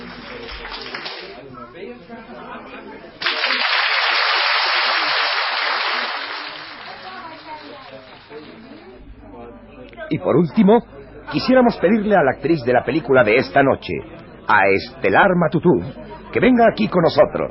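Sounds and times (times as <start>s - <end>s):
audience clapping: 0.0s - 1.4s, 3.2s - 7.6s
speech: 2.0s - 3.6s, 10.1s - 17.4s.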